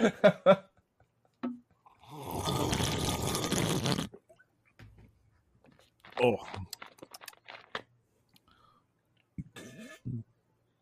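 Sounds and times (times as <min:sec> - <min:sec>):
speech: 0:00.0 - 0:00.6
laughter: 0:00.0 - 0:01.4
burping into soda bottle: 0:02.0 - 0:04.2
fizzy gurgling slurp from a soda bottle: 0:02.0 - 0:04.2.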